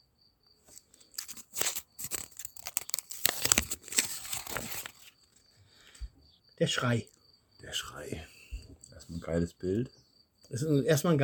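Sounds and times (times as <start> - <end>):
paper slip pulled from a bowl and unfolded, rustling and crinkling: 0.7 - 5.4
speech: 6.6 - 8.4, 9.1 - 11.2.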